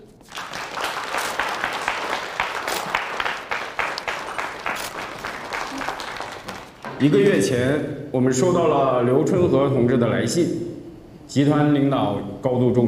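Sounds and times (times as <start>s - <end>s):
audience applause: 0.2s - 7.3s
speech: 7.0s - 10.7s, 11.3s - 12.8s.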